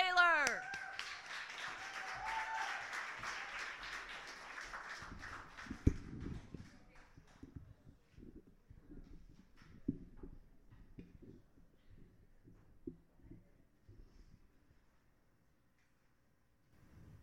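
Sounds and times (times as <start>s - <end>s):
audience applause for a poet: 0.0s - 7.4s.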